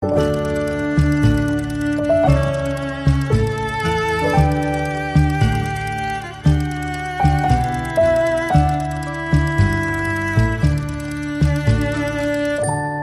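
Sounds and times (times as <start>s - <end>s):
music box lullaby: 0.1s - 13.0s.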